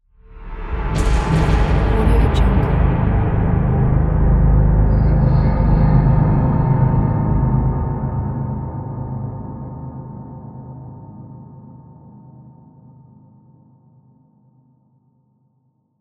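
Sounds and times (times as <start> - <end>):
dark demonic stinger: 0.2 - 10.2.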